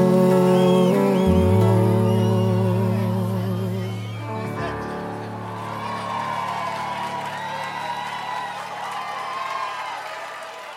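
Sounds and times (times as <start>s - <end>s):
sertanejo sofrência romantic music: 0.0s - 8.0s.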